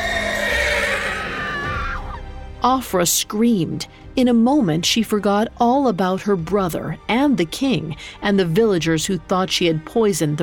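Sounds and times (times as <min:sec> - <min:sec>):
strangled high-pitched horse whinny, unicorn's cry: 0:00.0 - 0:02.2
speech: 0:02.6 - 0:10.4.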